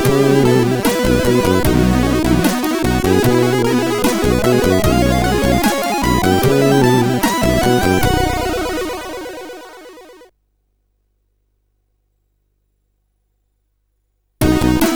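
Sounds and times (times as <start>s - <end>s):
SID CSG8580R5 chip intro music: 0.0s - 10.3s.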